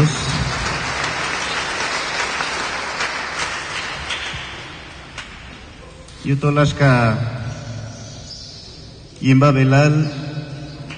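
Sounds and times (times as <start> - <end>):
audience applause: 0.0 - 4.9
speech: 6.2 - 7.4, 9.2 - 10.3.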